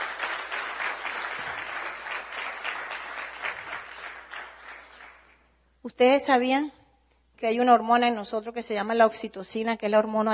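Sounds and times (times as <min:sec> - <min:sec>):
audience applause: 0:00.0 - 0:05.3
speech: 0:05.8 - 0:06.8, 0:07.4 - 0:10.3.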